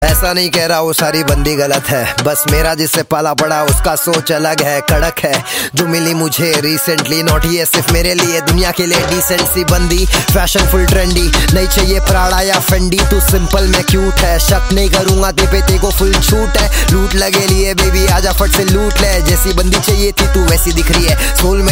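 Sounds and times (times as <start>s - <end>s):
rap music: 0.0s - 21.7s.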